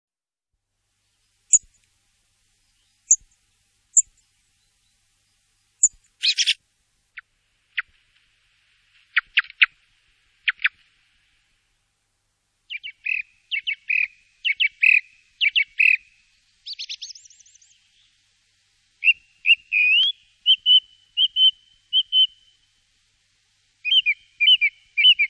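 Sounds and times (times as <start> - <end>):
Song thrush singing: 1.0 - 8.0, 12.6 - 18.4, 19.0 - 22.8, 23.8 - 25.2.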